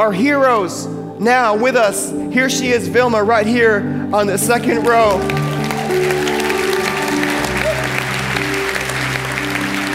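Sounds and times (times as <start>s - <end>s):
speech: 0.0s - 6.2s
audience applause: 4.6s - 9.9s.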